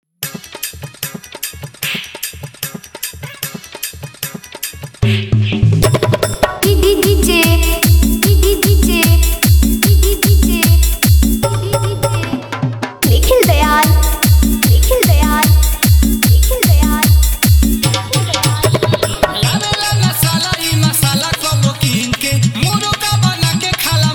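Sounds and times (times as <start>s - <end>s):
hard bass music: 5.0s - 12.3s, 13.0s - 24.1s.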